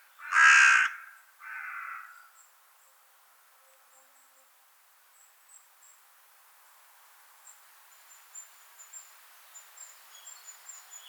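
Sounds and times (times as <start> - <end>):
carrion crow Corvus corone cawing: 0.2 - 2.3.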